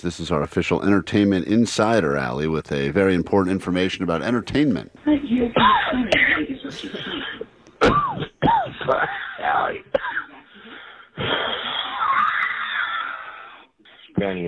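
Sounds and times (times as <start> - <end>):
speech: 0.0 - 8.0, 14.2 - 14.4
coughing fit in a phone message: 5.6 - 12.4.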